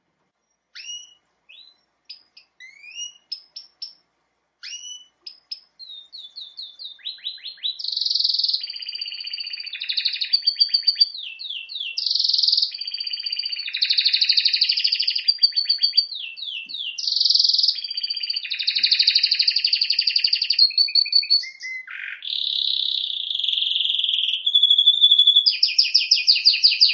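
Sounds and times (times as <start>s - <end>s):
canary singing: 0.5s - 4.0s, 4.6s - 26.9s.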